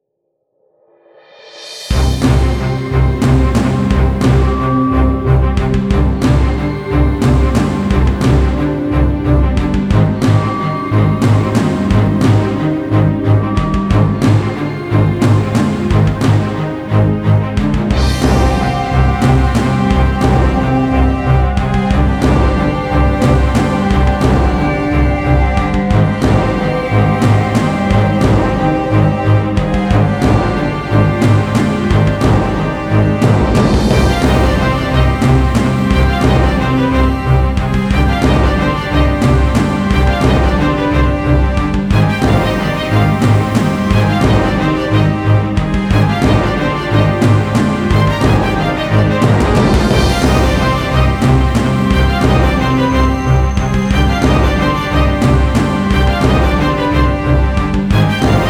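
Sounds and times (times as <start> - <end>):
storm: 1.9 - 58.4.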